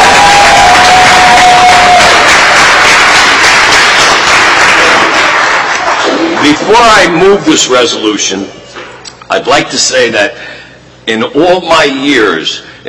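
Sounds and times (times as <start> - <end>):
crowd applause: 0.0 - 7.4
speech: 6.7 - 8.6, 9.3 - 10.4, 11.1 - 12.8.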